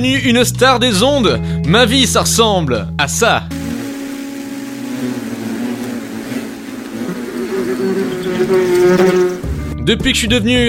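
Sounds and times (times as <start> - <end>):
speech: 0.0 - 3.6, 9.9 - 10.6
flies buzzing inside an apartment: 3.5 - 9.6.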